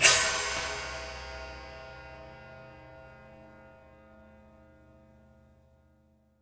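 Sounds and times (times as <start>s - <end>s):
prepared drums: 0.0s - 2.6s.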